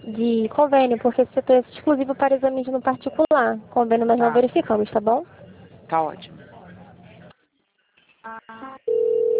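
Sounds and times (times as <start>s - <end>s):
speech: 0.1s - 6.4s
telephone tone while a call to a clinic is transferred: 8.3s - 9.3s.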